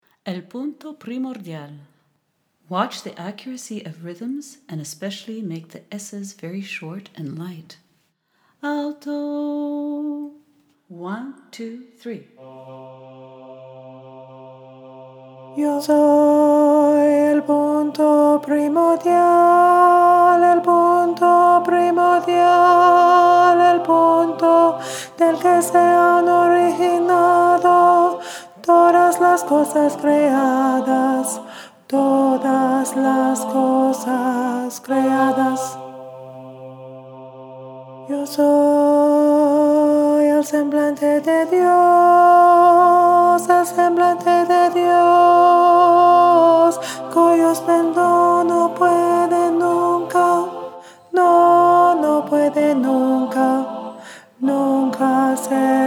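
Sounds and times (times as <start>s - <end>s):
alto singing: 12.4s - 55.8s
choral music: 12.4s - 55.8s.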